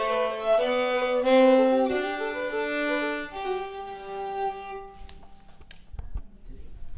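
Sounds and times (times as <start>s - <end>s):
two-part polska folk dance tune: 0.0s - 5.2s.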